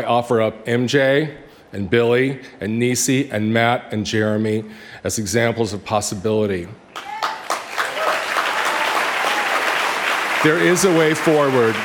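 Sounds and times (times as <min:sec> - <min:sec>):
speech: 0:00.0 - 0:07.1, 0:10.4 - 0:11.8
audience applause: 0:07.0 - 0:11.8.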